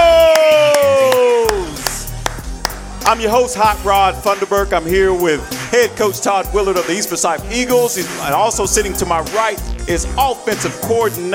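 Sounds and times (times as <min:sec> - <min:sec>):
small crowd of fans whooping: 0:00.0 - 0:02.0
hands clapping: 0:00.2 - 0:03.4
speech: 0:03.1 - 0:11.3.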